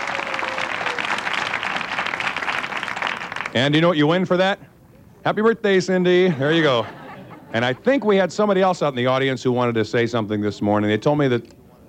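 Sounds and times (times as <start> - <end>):
audience applause for a woman's birthday: 0.0 - 3.6
speech: 3.6 - 11.6
laughter: 6.2 - 8.1.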